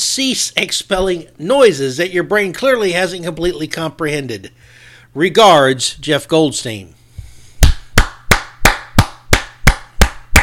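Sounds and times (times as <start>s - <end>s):
speech: 0.0s - 7.0s
person clapping hands in a standing ovation: 7.6s - 10.4s.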